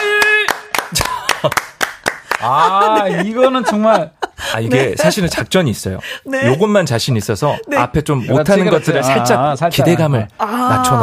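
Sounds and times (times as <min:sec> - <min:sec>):
audience clapping: 0:00.0 - 0:02.8
speech: 0:00.9 - 0:01.7, 0:02.4 - 0:11.0
laughter: 0:02.3 - 0:09.8.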